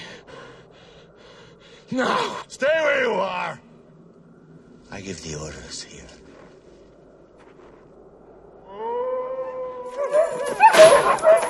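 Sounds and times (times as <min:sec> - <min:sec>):
speech: 0:01.9 - 0:03.7, 0:04.9 - 0:06.2
dog howling: 0:08.6 - 0:11.4
several dogs barking and yelping: 0:09.9 - 0:11.4.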